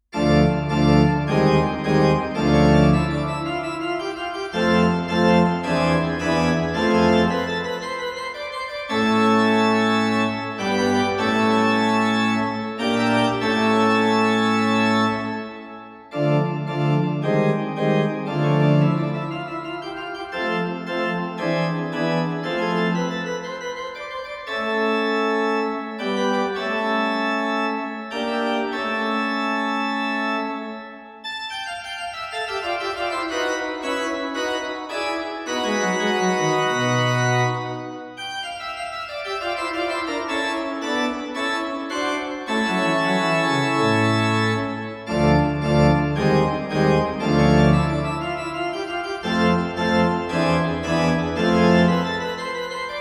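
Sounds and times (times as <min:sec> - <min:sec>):
organist playing a postlude: 0:00.1 - 0:52.9.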